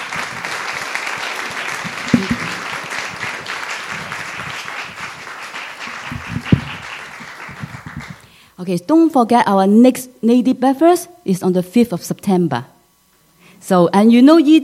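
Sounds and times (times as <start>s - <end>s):
audience applause: 0.0s - 8.2s
speech: 8.6s - 12.8s, 13.7s - 14.6s.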